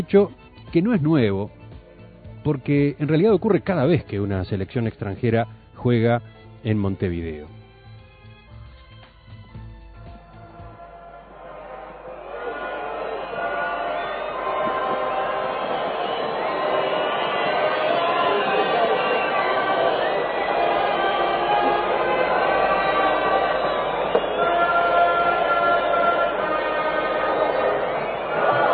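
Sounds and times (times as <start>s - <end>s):
speech: 0.0s - 1.6s, 2.4s - 7.6s
stadium crowd whistling: 10.2s - 28.7s
national anthem being played in a stadium: 10.4s - 28.7s.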